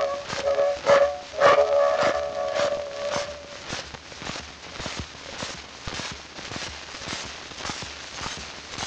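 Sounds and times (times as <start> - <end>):
fanfare: 0.0 - 3.7.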